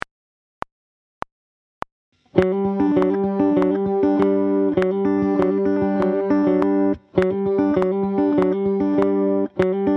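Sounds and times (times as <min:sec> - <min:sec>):
guitar played with hybrid picking: 0:02.2 - 0:09.9.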